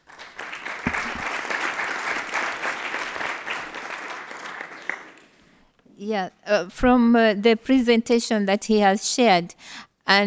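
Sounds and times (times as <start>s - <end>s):
audience applause: 0.0s - 5.4s
speech: 6.0s - 10.2s.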